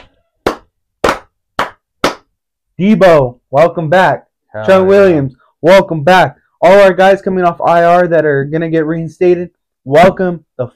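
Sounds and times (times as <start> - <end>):
hands clapping: 0.0 - 2.3
speech: 2.8 - 10.7.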